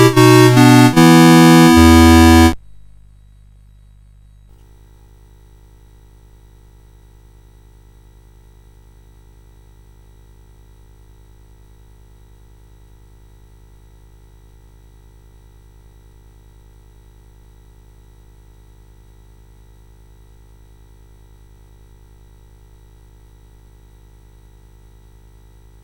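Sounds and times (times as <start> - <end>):
lullaby on CSG8580R5 sound chip: 0.0 - 2.6.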